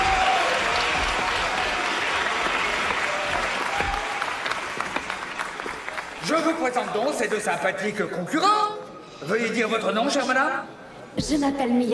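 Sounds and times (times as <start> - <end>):
audience applause: 0.0 - 7.1
speech: 6.5 - 11.9.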